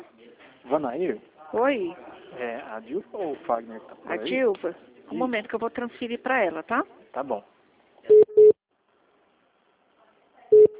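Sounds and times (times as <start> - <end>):
speech: 0.7 - 8.2
telephone busy signal on a transferred office call: 8.1 - 8.6, 10.5 - 10.7.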